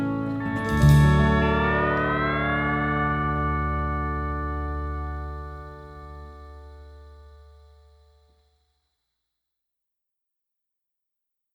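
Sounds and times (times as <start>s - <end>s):
instrumental music: 0.0s - 7.6s.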